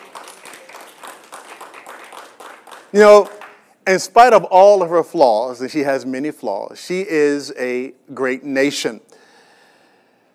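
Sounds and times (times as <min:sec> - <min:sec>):
crowd clapping: 0:00.0 - 0:03.7
speech: 0:02.9 - 0:09.1.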